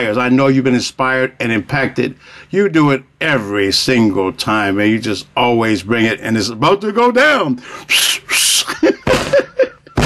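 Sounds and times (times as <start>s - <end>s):
speech: 0.0s - 10.0s
person attempting whistling: 7.7s - 8.7s
laughter: 8.3s - 10.0s.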